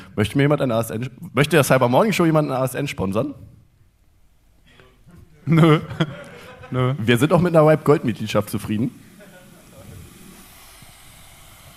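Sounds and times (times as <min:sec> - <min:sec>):
speech: 0:00.2 - 0:03.6, 0:05.5 - 0:09.0
laughter: 0:05.1 - 0:07.8, 0:08.9 - 0:10.3
electric kettle: 0:07.2 - 0:11.7.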